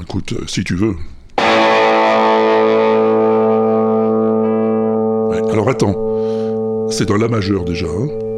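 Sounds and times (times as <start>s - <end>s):
speech: 0.1s - 1.2s, 5.5s - 8.2s
Gretsch 6120 electric guitar chord: 1.4s - 6.9s.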